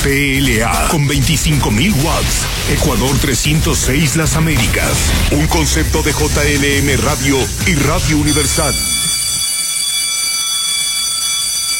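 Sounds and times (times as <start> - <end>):
speech: 0.0 - 9.0
loud electric bell ringing: 7.9 - 11.7.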